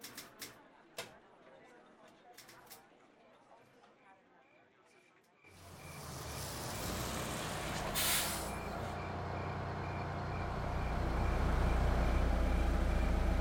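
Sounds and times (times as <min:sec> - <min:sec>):
police bus engine rumble arriving at a hotel: 0:05.5 - 0:13.4
police bus air-brake hiss: 0:07.9 - 0:08.6.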